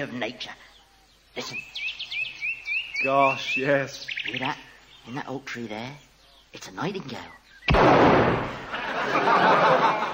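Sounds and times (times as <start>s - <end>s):
speech: 0.0s - 0.7s, 1.4s - 2.0s, 3.0s - 10.1s
gunshot: 7.7s - 8.7s
laughter: 8.6s - 10.1s.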